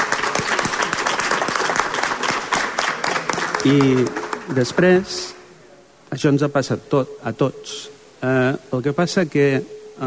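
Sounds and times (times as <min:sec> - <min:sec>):
audience applause: 0:00.0 - 0:04.8
speech: 0:03.6 - 0:05.4, 0:06.1 - 0:10.0.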